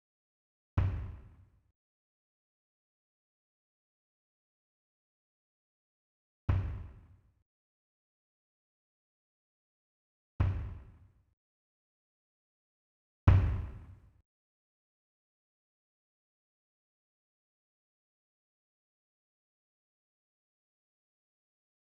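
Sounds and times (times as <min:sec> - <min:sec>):
kick drum: 0:00.8 - 0:01.4, 0:06.5 - 0:07.1, 0:10.4 - 0:11.0, 0:13.3 - 0:14.0.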